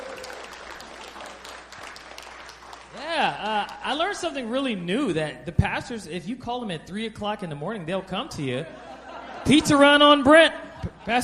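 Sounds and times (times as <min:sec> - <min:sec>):
audience applause: 0:00.0 - 0:04.1
speech: 0:03.3 - 0:11.2
laughter: 0:08.0 - 0:11.2.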